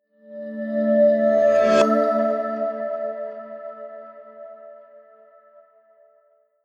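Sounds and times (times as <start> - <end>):
promo synth pad: 0.2 - 4.7.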